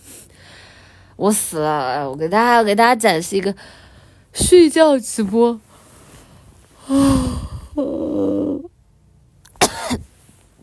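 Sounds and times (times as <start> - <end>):
speech: 1.2 - 3.8, 4.4 - 5.7, 6.9 - 8.0
person yawning: 6.8 - 8.7.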